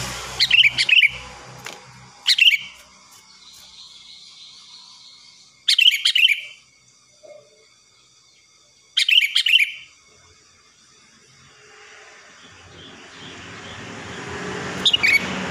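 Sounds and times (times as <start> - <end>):
Sooty-headed bulbul giving liquid chattering whistled phrases: 0.4 - 1.3, 2.2 - 2.8, 3.5 - 6.6, 9.0 - 10.0, 14.8 - 15.3.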